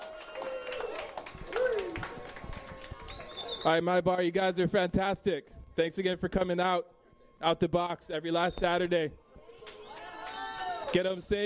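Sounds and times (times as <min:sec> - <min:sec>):
audience clapping: 0:00.0 - 0:03.8, 0:09.6 - 0:11.0
faint crowd voices: 0:00.0 - 0:11.4
speech: 0:03.6 - 0:09.2, 0:10.9 - 0:11.4.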